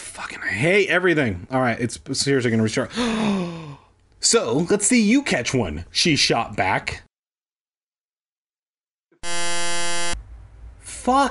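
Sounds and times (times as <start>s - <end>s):
speech: 0.5s - 7.0s, 11.1s - 11.2s
computer alert buzzing: 9.2s - 10.2s.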